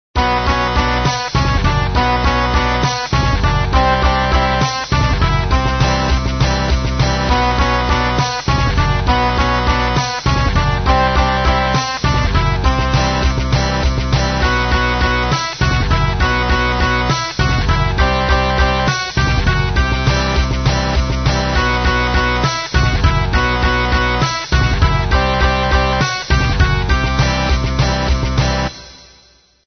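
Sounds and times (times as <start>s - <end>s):
MIDI music: 0.2s - 29.2s.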